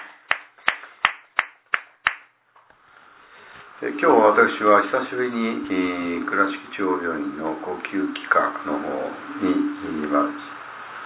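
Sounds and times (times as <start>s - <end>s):
hand claps: 0.0s - 2.4s
speech: 3.8s - 10.6s.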